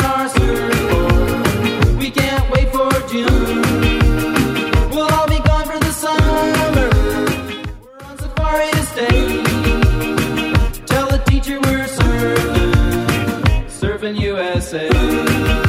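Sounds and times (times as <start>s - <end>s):
60s Redrum drum machine beat at 165 bpm: 0.0s - 15.6s.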